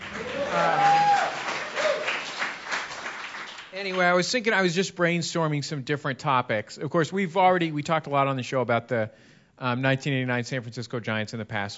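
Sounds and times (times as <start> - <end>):
audience applause: 0.0 - 4.1
speech: 3.8 - 11.7.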